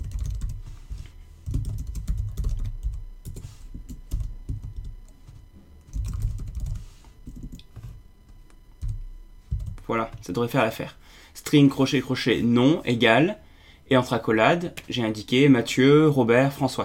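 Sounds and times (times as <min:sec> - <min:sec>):
names typed on a computer keyboard: 0:00.0 - 0:10.4
speech: 0:09.9 - 0:16.8.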